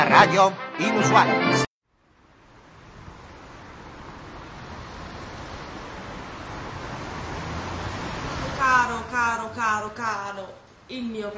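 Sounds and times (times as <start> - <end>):
speech: 0.1 - 1.6, 8.7 - 11.3
strong wind blowing: 2.3 - 9.4.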